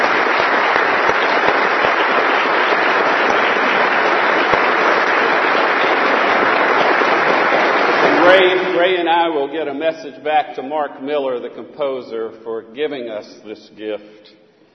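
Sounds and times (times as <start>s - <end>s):
audience applauding the choir: 0.0s - 9.5s
speech: 9.7s - 14.4s.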